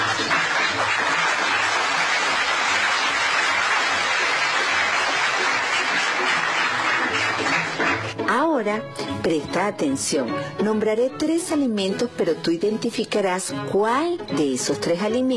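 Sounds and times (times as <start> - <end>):
applause: 0.0 - 8.2
speech: 8.6 - 15.3.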